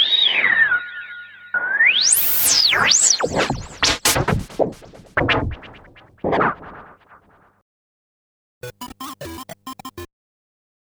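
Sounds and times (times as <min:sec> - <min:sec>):
Kaossilator synthesizer: 0:00.1 - 0:07.2, 0:08.7 - 0:10.1.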